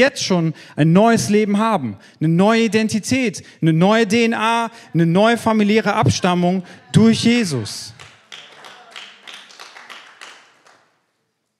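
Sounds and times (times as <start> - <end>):
speech: 0.0 - 8.1
audience applause: 7.9 - 11.0.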